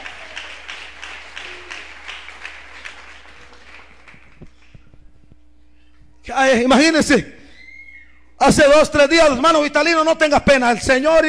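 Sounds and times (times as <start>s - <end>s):
audience applauding: 0.0s - 4.8s
speech: 6.3s - 7.4s, 8.5s - 11.2s.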